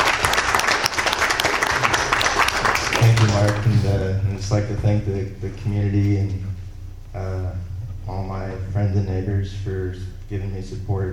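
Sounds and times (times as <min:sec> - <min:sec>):
audience applause at a community awards event: 0:00.0 - 0:03.7
speech: 0:04.5 - 0:06.6, 0:07.2 - 0:11.1.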